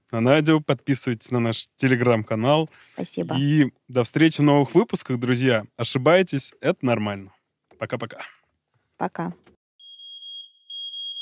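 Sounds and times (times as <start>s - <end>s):
speech: 0.1s - 8.4s, 9.0s - 9.4s
fire alarm voice announcement: 0.2s - 7.2s
fire alarm beeping: 9.8s - 11.2s.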